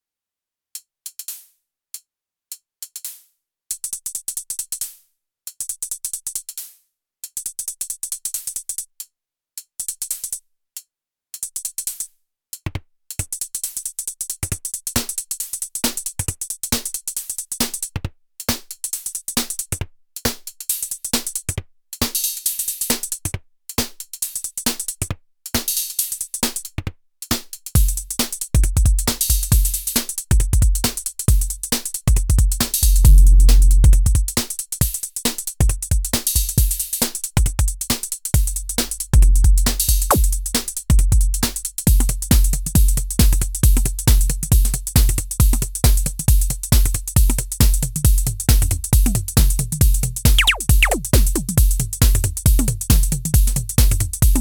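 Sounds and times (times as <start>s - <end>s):
Nord Drum through Octatrack: 27.8s - 35.0s, 35.6s - 54.3s.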